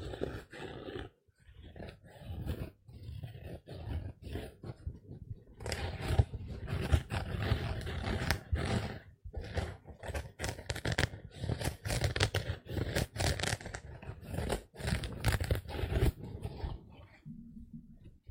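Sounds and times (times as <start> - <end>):
sponge scrubbing against a surface: 0.0 - 17.0.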